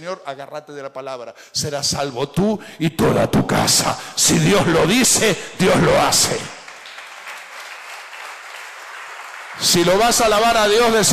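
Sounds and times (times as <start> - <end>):
speech: 0.0 - 6.6, 9.6 - 11.1
audience applauding: 6.2 - 10.6.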